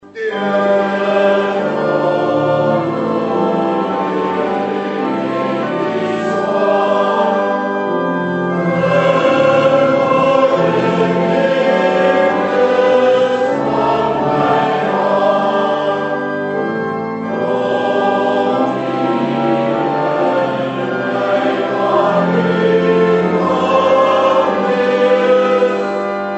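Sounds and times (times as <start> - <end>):
congregation singing: 0.0 - 26.3.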